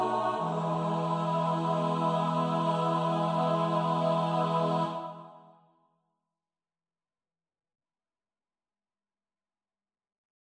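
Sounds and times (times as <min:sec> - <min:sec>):
bass choir part practice: 0:00.0 - 0:05.5.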